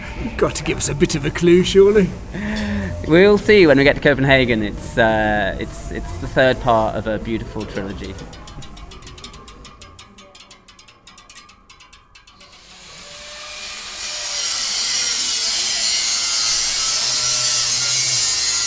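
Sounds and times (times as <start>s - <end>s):
rasping scraping strokes on bicycle parts: 0.0s - 18.6s
speech: 0.2s - 8.4s
grinding or welding of bicycle parts in a container outside the Arnolfini: 0.3s - 9.0s, 12.4s - 18.6s.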